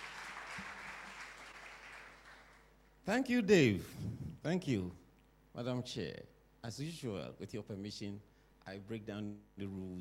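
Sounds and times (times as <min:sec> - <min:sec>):
audience applause welcoming a speaker: 0:00.0 - 0:02.7
speech: 0:03.1 - 0:05.0, 0:05.6 - 0:09.9.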